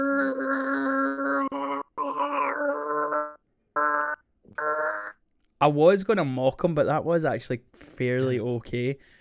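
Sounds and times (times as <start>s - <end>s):
voice imitating a TIE Fighter scream: 0.0s - 5.2s
speech: 5.6s - 9.2s.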